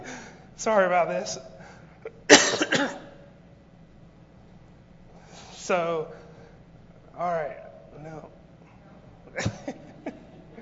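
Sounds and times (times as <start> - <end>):
speech: 0.6 - 1.6, 2.7 - 3.0, 5.7 - 6.2, 7.2 - 8.4
person coughing from something lodged in the throat: 2.0 - 3.2
laughter: 9.3 - 10.6.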